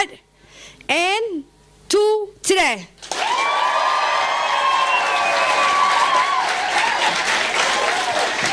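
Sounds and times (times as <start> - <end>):
speech: 0.0 - 3.4
audience clapping: 3.0 - 8.5.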